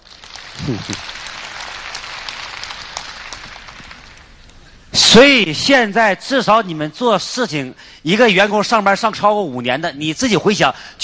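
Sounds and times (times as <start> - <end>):
audience applause: 0.0 - 4.3
voice murmuring: 0.6 - 1.0
speech: 0.6 - 1.2, 5.1 - 11.0.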